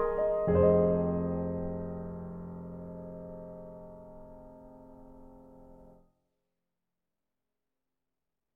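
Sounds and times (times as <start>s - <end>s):
classical piano: 0.0s - 6.0s.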